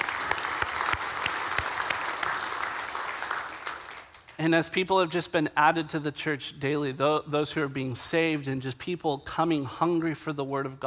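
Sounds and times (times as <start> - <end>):
audience applause: 0.0 - 4.3
speech: 4.4 - 10.8.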